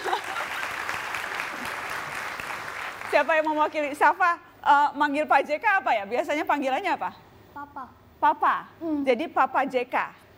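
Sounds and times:
studio audience applause: 0.0s - 3.8s
speech: 3.1s - 10.2s.

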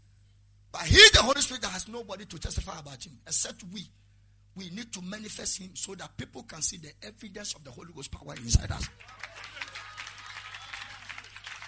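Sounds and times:
low steady hum: 0.0s - 9.2s
speech: 0.8s - 9.4s
audience clapping: 8.4s - 11.6s.

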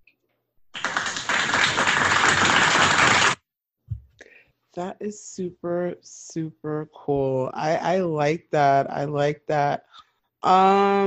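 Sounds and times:
crowd applause: 0.7s - 3.4s
speech: 4.8s - 11.0s.

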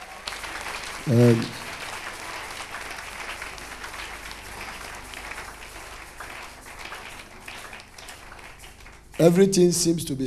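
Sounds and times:
audience clapping: 0.0s - 10.2s
low voice: 1.1s - 1.5s
speech: 1.1s - 1.6s, 9.2s - 10.2s.

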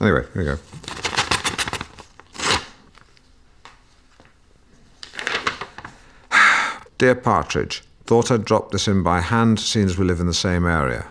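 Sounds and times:
speech: 0.0s - 1.0s, 7.0s - 11.0s
paper rustling: 0.4s - 6.3s
envelope being torn open: 0.6s - 3.2s, 5.0s - 6.1s.

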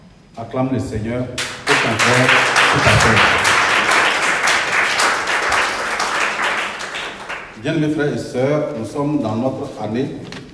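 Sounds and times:
speech: 0.4s - 3.6s, 7.6s - 10.4s
congregation applauding during a Sunday morning worship service in church: 1.4s - 7.6s.

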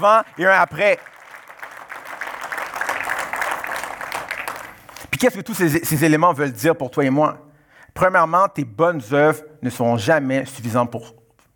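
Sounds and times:
speech: 0.0s - 1.2s, 5.2s - 11.5s
audience applause: 0.0s - 5.2s.

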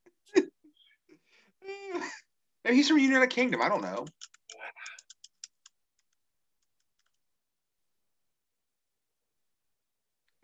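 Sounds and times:
speech: 2.7s - 4.2s
typing on a computer keyboard in the United Kingdom: 3.8s - 7.2s.

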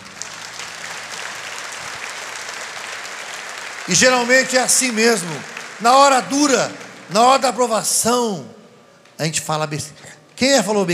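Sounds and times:
audience applause: 0.0s - 8.3s
speech: 3.9s - 8.6s, 9.2s - 10.9s.

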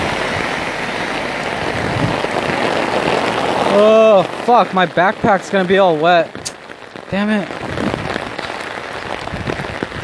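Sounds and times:
heavy rain: 0.0s - 10.0s
speech: 3.8s - 6.4s, 7.1s - 7.6s.

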